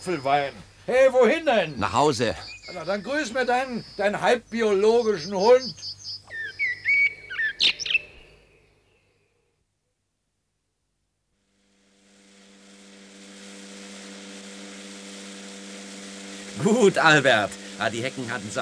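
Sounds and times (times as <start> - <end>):
speech: 0.0 - 6.0, 16.6 - 18.6
blackbird singing: 0.0 - 9.0
steady mechanical drone: 11.7 - 18.6.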